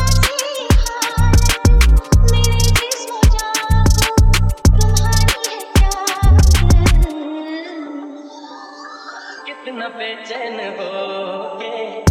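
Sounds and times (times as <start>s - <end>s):
drill music mix: 0.0s - 7.2s.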